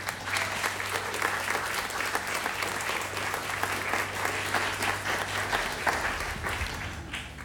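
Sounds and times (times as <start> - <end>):
audience applause: 0.0 - 7.4
low hum: 2.8 - 7.4.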